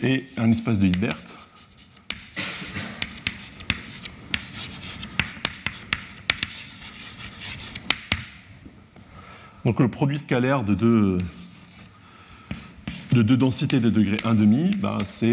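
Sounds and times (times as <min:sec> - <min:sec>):
speech: 0:00.0 - 0:01.4, 0:09.6 - 0:11.4, 0:13.2 - 0:15.3
writing on a board during a maths lecture: 0:00.0 - 0:08.3, 0:11.2 - 0:11.9, 0:12.5 - 0:15.3.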